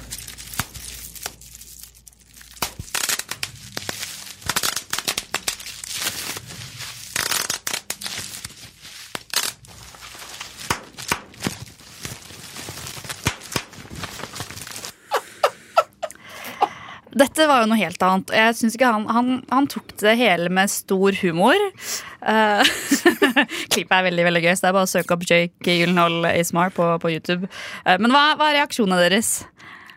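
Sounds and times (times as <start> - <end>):
bubble wrap being squeezed and popped: 0.0 - 15.0
crinkling plastic: 0.0 - 15.0
speech: 17.4 - 29.5
laughter: 22.6 - 23.4.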